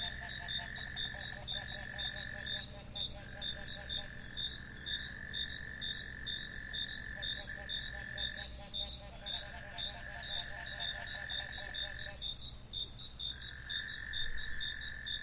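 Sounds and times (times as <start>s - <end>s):
steady high insect whine between lagoon and jungle: 0.0s - 15.2s.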